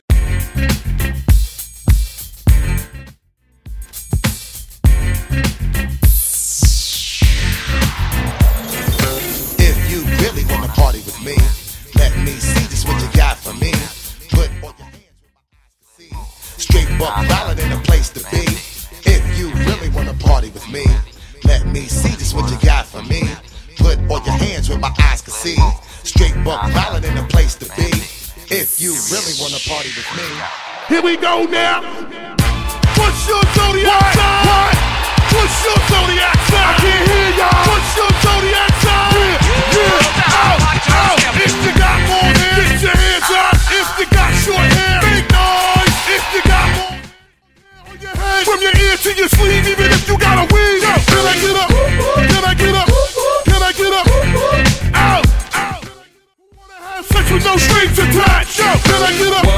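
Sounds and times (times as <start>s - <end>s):
moombahton bootleg music: 0.0s - 59.5s.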